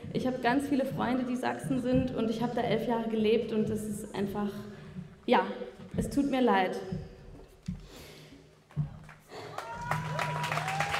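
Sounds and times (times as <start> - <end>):
low thumps: 0.0 - 8.0, 8.6 - 9.3
speech: 0.2 - 4.7, 5.3 - 7.0
audience applause: 9.3 - 10.9.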